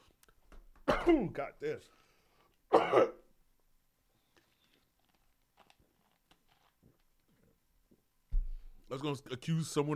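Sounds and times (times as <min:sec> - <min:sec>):
person coughing in a room with poor air: 0:00.9 - 0:01.3, 0:02.7 - 0:03.3
speech: 0:01.1 - 0:02.0, 0:02.9 - 0:03.2, 0:08.9 - 0:09.9.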